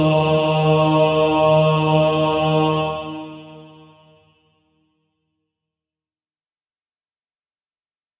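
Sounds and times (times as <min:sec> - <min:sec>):
male choir singing: 0:00.0 - 0:04.2.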